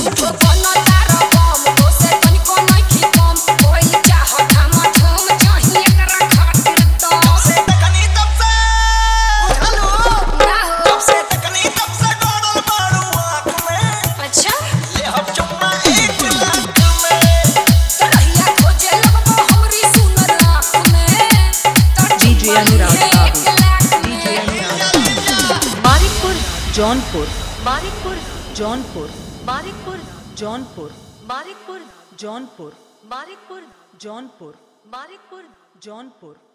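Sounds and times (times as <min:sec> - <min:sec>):
hard dholki bass dance mix: 0:00.0 - 0:27.3.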